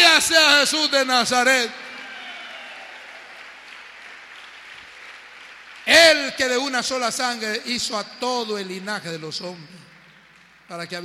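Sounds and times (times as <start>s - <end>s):
speech: 0.2s - 1.9s, 5.9s - 9.8s, 10.7s - 11.0s
audience applause: 1.7s - 6.4s.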